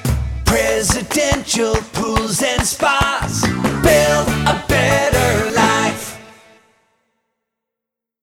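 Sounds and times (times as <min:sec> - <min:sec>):
a cappella spa sales and service jingles: 0:00.5 - 0:06.3.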